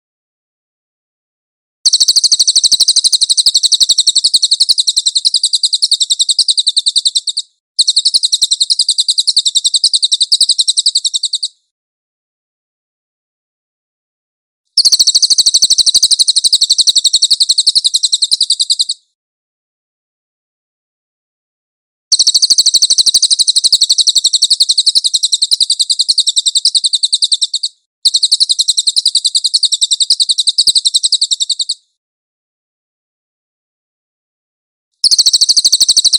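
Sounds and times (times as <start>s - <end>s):
cililin high-pitched trill: 1.9s - 11.6s, 14.8s - 19.0s, 22.1s - 31.9s, 35.0s - 36.1s.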